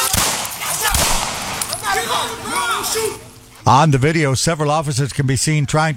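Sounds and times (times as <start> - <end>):
police gunshots: 0.0 - 3.5
raised voices calling out: 0.0 - 4.1
speech: 2.2 - 5.9.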